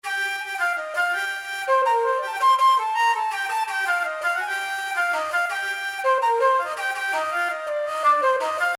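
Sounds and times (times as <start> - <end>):
flute: 0.0 - 8.7.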